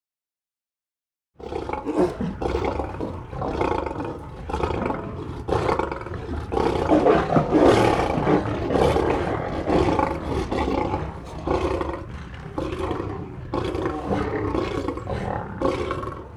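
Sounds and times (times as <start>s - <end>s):
lions growling: 1.4s - 16.3s.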